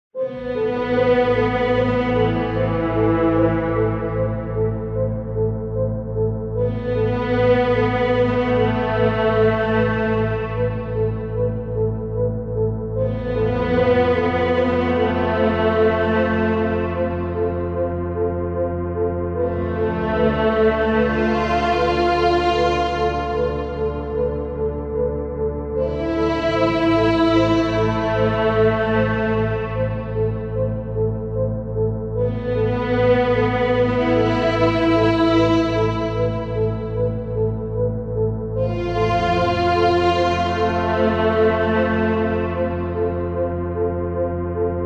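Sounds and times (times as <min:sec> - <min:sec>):
royalty free music: 0:00.0 - 0:44.8.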